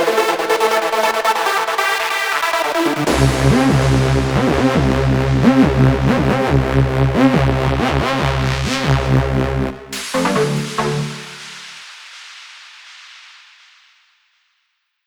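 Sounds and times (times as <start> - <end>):
Virus TI synthesizer: 0.0 - 12.0.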